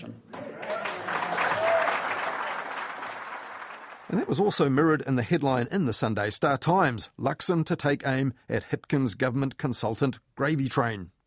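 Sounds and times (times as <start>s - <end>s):
crowd of party supporters applauding: 0.3s - 4.6s
speech: 4.1s - 11.2s.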